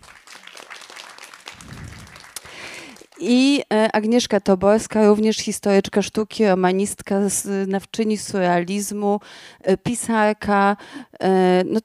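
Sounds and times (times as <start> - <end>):
audience applause: 0.0 - 3.2
speech: 3.2 - 11.8.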